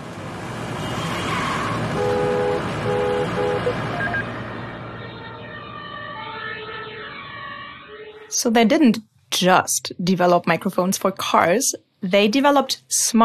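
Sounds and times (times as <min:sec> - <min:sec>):
emergency vehicle siren: 0:00.3 - 0:08.4
speech: 0:08.4 - 0:13.2.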